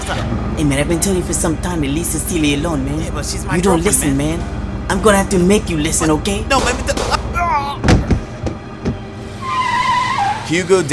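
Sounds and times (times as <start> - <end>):
car starting and driving off: 0.0 - 10.9
speech: 0.1 - 8.0, 10.5 - 10.9
heavy dull thuds: 6.6 - 9.2.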